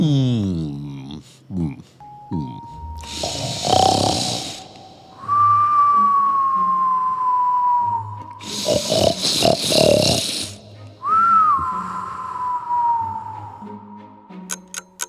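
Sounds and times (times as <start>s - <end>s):
cartoonish snoring effect for a sleeping character: 0.0s - 5.2s, 8.4s - 10.7s
person narrating a children's story: 0.0s - 5.3s, 8.4s - 10.6s
long sustained whistle falling in pitch: 5.1s - 8.5s, 11.0s - 14.0s.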